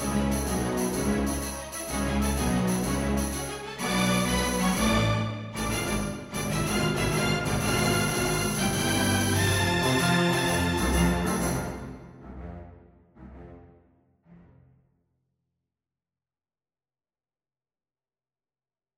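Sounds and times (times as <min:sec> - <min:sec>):
orchestral accompaniment: 0:00.0 - 0:14.8.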